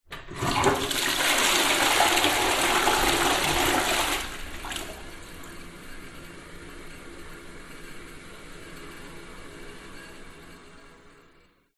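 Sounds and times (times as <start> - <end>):
household toilet flushing: 0.1 - 8.2.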